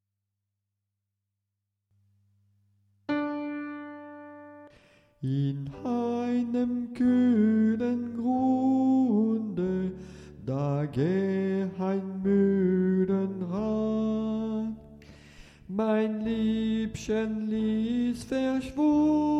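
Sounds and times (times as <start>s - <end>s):
soprano singing: 5.2s - 15.0s, 15.7s - 19.3s.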